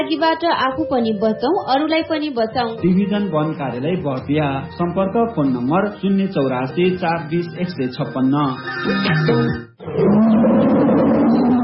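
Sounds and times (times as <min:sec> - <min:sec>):
speech: 0:00.0 - 0:10.4
tiger roaring: 0:09.8 - 0:11.6.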